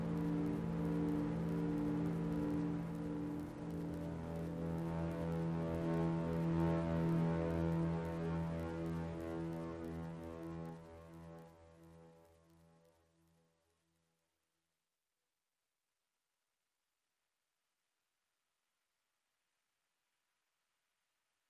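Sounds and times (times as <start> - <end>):
synth pads: 0.0 - 12.8.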